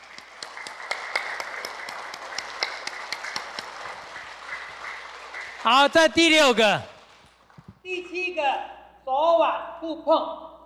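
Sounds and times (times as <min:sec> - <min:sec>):
people clapping for the museum director: 0:00.0 - 0:07.8
speech: 0:05.6 - 0:06.9, 0:07.9 - 0:10.5.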